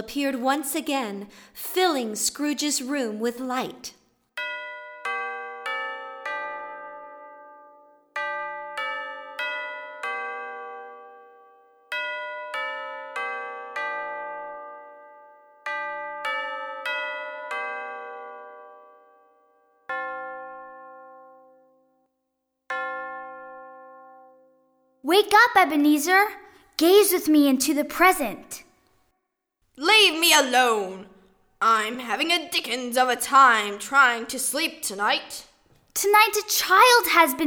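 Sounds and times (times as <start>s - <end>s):
speech: 0.0s - 4.0s, 25.2s - 28.6s, 29.8s - 37.4s
clock chiming a four-note melody: 4.4s - 21.6s.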